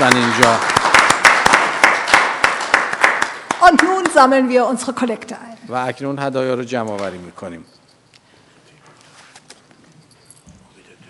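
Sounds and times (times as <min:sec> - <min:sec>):
group clapping: 0:00.0 - 0:04.5
speech: 0:00.1 - 0:00.7, 0:03.6 - 0:07.8.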